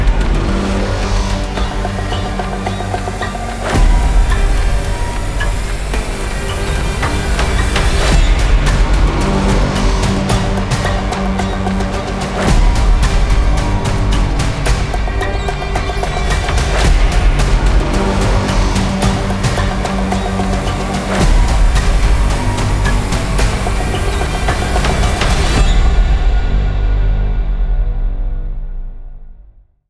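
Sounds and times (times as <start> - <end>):
scary horror trailer music: 0.0 - 29.6.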